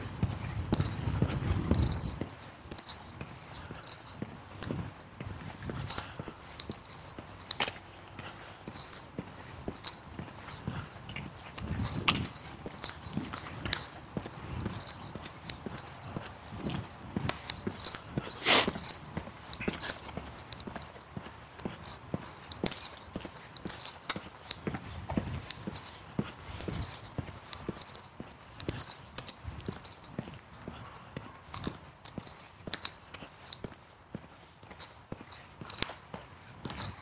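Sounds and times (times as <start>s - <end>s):
walking footsteps: 0.0s - 37.0s.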